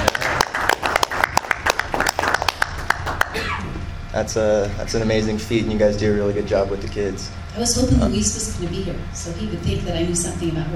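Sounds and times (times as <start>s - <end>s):
round of applause: 0.0s - 3.4s
speech: 4.2s - 10.7s.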